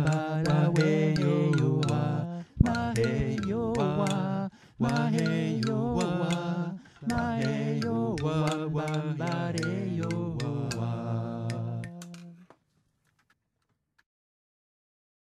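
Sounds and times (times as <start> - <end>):
xylophone: 0.0 - 12.3
vocal: 0.0 - 12.5.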